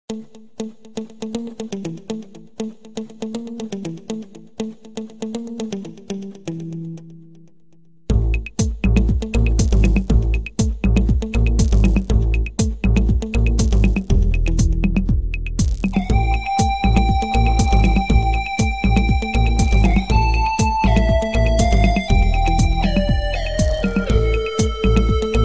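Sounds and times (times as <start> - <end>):
electro beat ringtone: 8.1 - 25.4.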